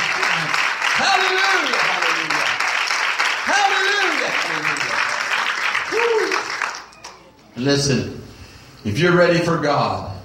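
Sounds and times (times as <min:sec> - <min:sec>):
audience clapping hands: 0:00.0 - 0:07.3
speech: 0:07.6 - 0:08.2, 0:08.8 - 0:10.1.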